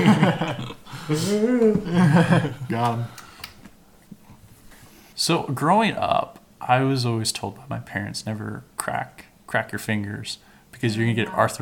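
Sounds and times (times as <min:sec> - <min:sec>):
laughter: 0:00.0 - 0:02.8
speech: 0:00.1 - 0:03.2, 0:05.2 - 0:11.6
person yawning: 0:00.9 - 0:02.0.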